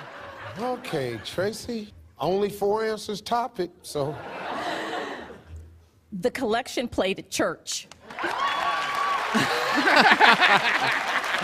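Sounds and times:
laughter: 0.0 - 1.7, 4.0 - 5.5, 9.2 - 11.4
speech: 0.6 - 4.4, 6.1 - 8.4, 9.3 - 11.4
clapping: 7.9 - 11.4.

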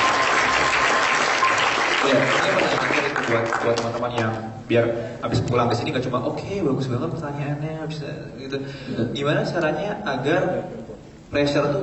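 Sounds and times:
applause, hand clapping: 0.0 - 4.4
speech: 3.3 - 11.8.

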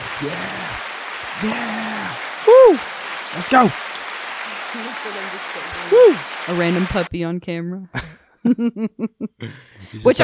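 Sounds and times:
applause: 0.0 - 7.1
speech: 0.2 - 3.9, 4.7 - 10.2
laughter: 1.4 - 2.8, 8.0 - 9.7.

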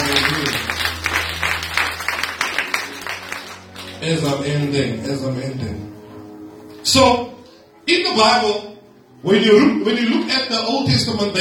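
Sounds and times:
audience clapping: 0.0 - 5.0
speech: 4.0 - 6.0, 6.8 - 11.3.

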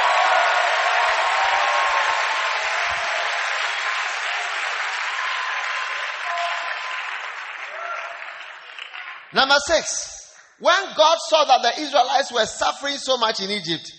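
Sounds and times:
audience clapping hands: 0.0 - 11.0
speech: 9.4 - 13.9.

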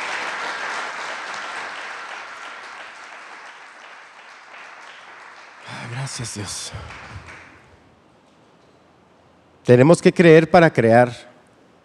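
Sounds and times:
audience applause: 0.0 - 7.7
speech: 6.1 - 7.2, 9.6 - 11.3.

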